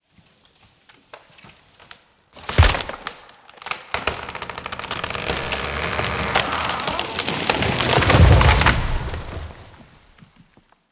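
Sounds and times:
broken tree falling: 0:02.4 - 0:10.2.

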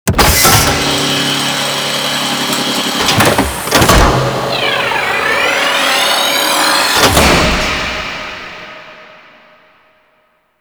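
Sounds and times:
space shield generator opening: 0:00.1 - 0:08.5.

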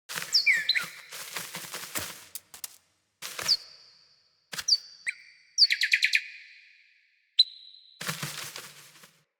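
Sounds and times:
female cardinal feeding: 0:00.1 - 0:01.9, 0:04.6 - 0:06.7.

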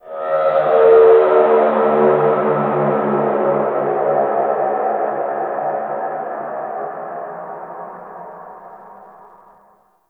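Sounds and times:
landscape ambient texture: 0:00.0 - 0:08.9.

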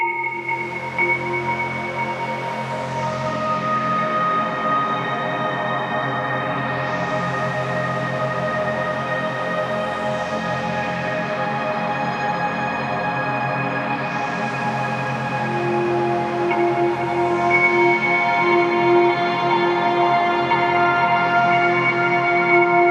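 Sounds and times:
random ambient sounds: 0:00.1 - 0:22.7.

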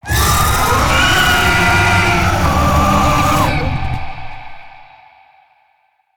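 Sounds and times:
death growl vocals: 0:00.0 - 0:04.9.

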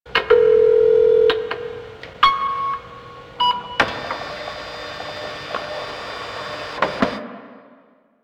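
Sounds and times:
office fax machine: 0:00.1 - 0:07.2.

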